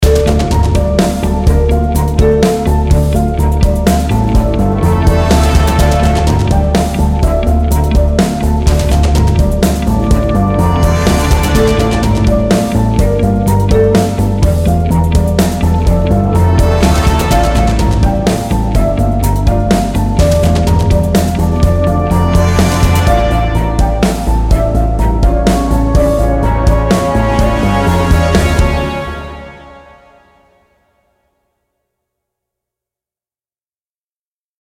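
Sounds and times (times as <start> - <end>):
guitar theme: 0.0 - 30.2.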